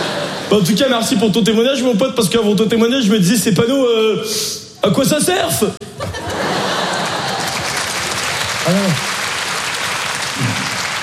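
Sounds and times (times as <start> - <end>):
laughter: 0.0 - 0.8, 5.8 - 9.2
speech: 0.5 - 6.4, 8.7 - 9.0
crowd cheer: 6.1 - 11.0
audience applause: 6.3 - 11.0.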